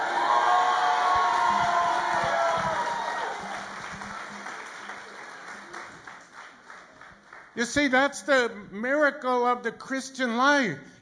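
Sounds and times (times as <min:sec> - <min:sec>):
church congregation shouting and cheering: 0:00.0 - 0:03.8
speech: 0:07.6 - 0:11.0.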